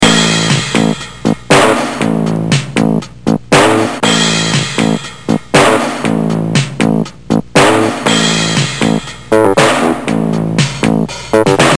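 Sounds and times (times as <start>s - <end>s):
intro music: 0.0s - 11.7s.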